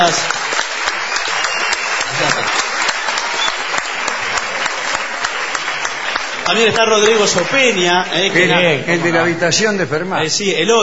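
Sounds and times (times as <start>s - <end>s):
audience applause: 0.0s - 9.0s
speech: 0.1s - 0.4s, 6.5s - 10.8s.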